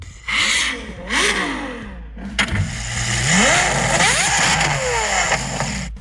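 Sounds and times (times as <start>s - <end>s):
Ferrari sports car engine revving: 0.0s - 5.9s.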